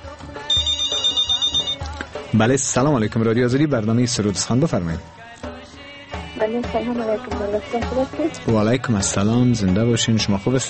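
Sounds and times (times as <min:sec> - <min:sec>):
telephone ringing for an incoming listener call to a radio call-in show: 0:00.5 - 0:01.9
speech: 0:02.3 - 0:05.2, 0:06.5 - 0:10.6.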